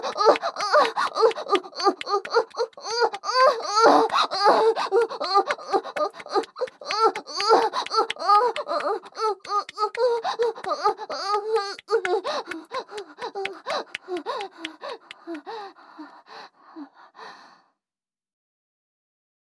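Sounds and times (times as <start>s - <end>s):
person moaning: 0.0s - 15.4s.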